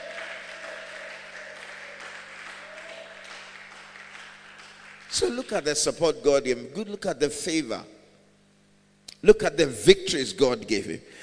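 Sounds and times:
audience applause: 0.0s - 5.6s
speech: 5.2s - 8.0s, 9.2s - 11.2s.

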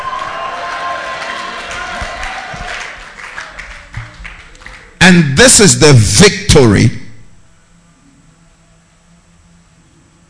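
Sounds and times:
audience shouting: 0.0s - 3.0s
speech: 5.1s - 7.0s.

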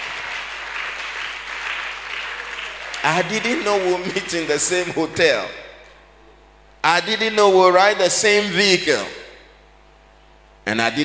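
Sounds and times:
crowd applause: 0.0s - 5.0s
speech: 3.0s - 5.6s, 6.8s - 9.2s, 10.7s - 11.0s.

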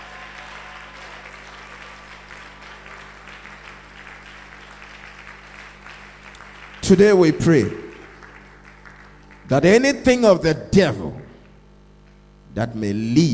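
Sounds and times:
people clapping: 0.0s - 10.2s
speech: 6.9s - 7.8s, 9.5s - 11.2s, 12.6s - 13.3s.

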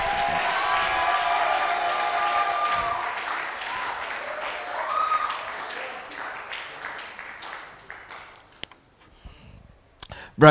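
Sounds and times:
audience shouting and cheering: 0.0s - 6.2s
audience applause: 0.0s - 8.5s.

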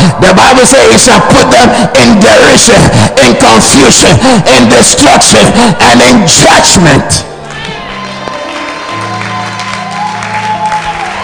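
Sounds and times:
speech: 0.2s - 7.3s
church congregation clapping: 7.4s - 11.2s.

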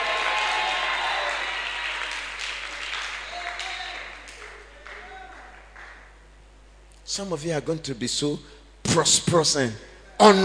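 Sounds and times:
audience clapping: 0.0s - 6.2s
speech: 7.2s - 10.4s.

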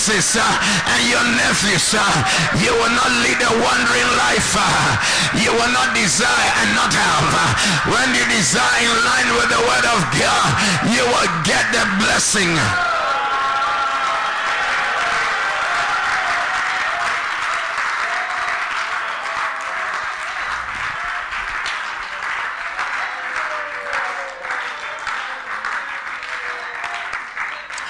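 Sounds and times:
speech: 0.0s - 12.9s
audience clapping: 0.0s - 27.8s
people shouting: 12.7s - 16.6s.

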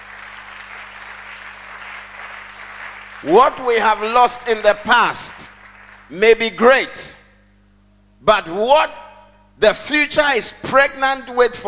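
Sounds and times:
audience clapping: 0.0s - 6.5s
speech: 3.2s - 5.5s, 6.1s - 7.2s, 8.2s - 9.0s, 9.6s - 11.6s.

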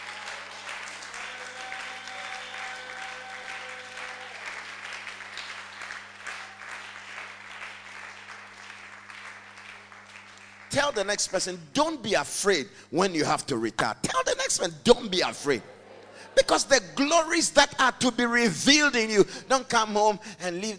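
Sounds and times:
audience clapping: 0.0s - 11.5s
speech: 10.8s - 15.8s, 16.4s - 20.7s.

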